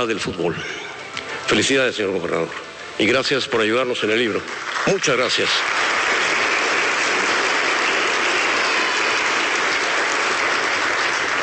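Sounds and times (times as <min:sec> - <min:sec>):
speech: 0:00.0 - 0:00.9, 0:01.5 - 0:05.9
applause: 0:04.0 - 0:11.4.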